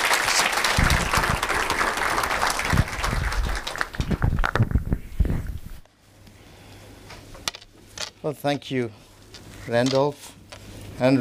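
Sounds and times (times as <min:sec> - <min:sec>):
audience applause welcoming a pastor at a church gathering in Durban: 0:00.0 - 0:04.6
speech: 0:08.3 - 0:09.0, 0:09.6 - 0:10.3, 0:11.0 - 0:11.1.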